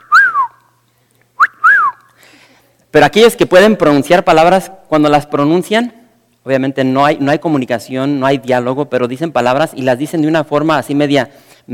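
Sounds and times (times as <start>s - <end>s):
person whistling parrot-like call: 0.0s - 0.6s, 1.4s - 2.1s
speech: 2.9s - 11.7s.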